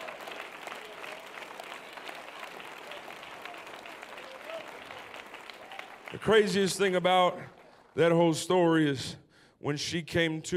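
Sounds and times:
audience clapping hands: 0.0s - 8.4s
speech: 6.1s - 10.5s.

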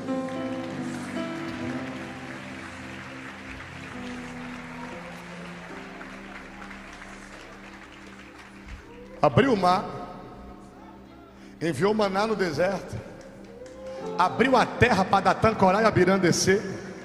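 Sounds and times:
church audience applauding: 0.0s - 10.3s, 12.6s - 15.6s
speech: 9.2s - 10.0s, 11.6s - 13.1s, 14.1s - 16.8s.

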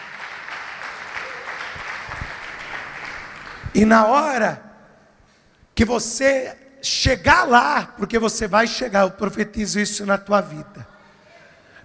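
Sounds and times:
audience applause: 0.0s - 3.7s
speech: 3.7s - 4.6s, 5.8s - 10.9s.

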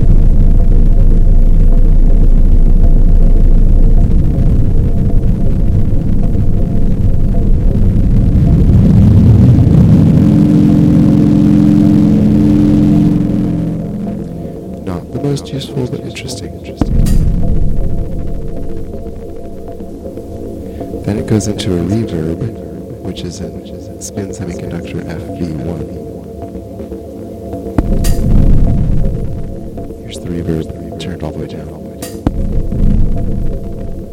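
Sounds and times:
delay pedal repeats in runaway self-oscillation: 0.0s - 34.1s
speech: 21.4s - 26.1s, 30.4s - 32.0s.

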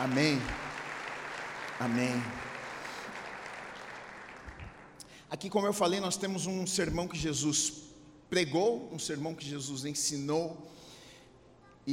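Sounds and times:
speech: 0.0s - 0.6s, 1.8s - 2.5s, 5.3s - 10.9s
audience applause: 0.0s - 5.0s.

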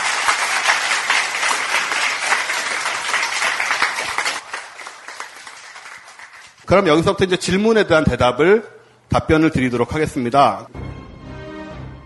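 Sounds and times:
audience applause: 0.0s - 6.6s
speech: 6.7s - 10.8s.

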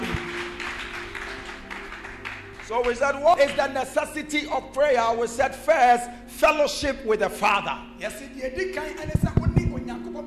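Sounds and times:
church congregation clapping during a prayer service: 0.0s - 4.4s
speech: 2.7s - 9.4s.

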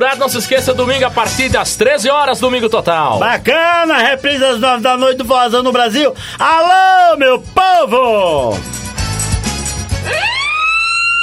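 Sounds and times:
speech: 0.0s - 8.8s
factory work whistle: 10.1s - 11.2s.

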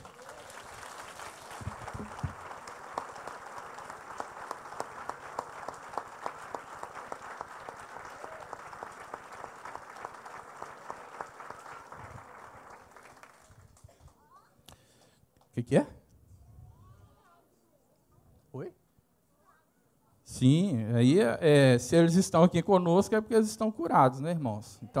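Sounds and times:
audience applauding: 0.0s - 14.2s
speech: 15.6s - 16.0s, 20.4s - 24.9s.

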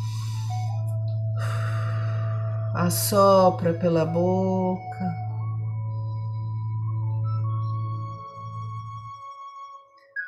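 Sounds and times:
deep inhale through the nose: 0.0s - 0.7s, 1.4s - 2.5s
steady droning tones: 0.0s - 9.2s
speech: 2.8s - 5.2s.

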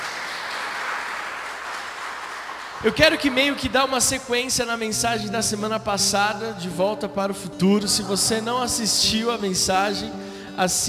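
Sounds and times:
audience applauding: 0.0s - 4.1s
speech: 2.8s - 10.8s.

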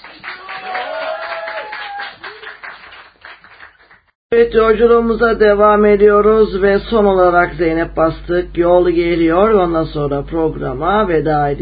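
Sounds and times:
applause: 0.0s - 4.2s
speech: 4.3s - 11.6s.

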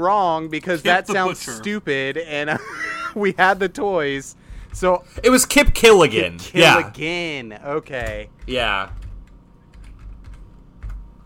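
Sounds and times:
speech: 0.0s - 9.0s
laughter: 0.8s - 1.8s, 2.4s - 3.4s
computer keyboard typing: 8.0s - 11.2s.

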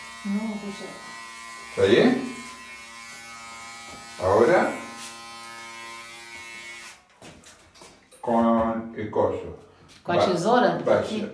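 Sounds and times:
electric hair clipper buzzing: 0.0s - 7.3s
speech: 0.2s - 1.2s, 1.8s - 2.4s, 4.2s - 4.8s, 9.1s - 11.3s.

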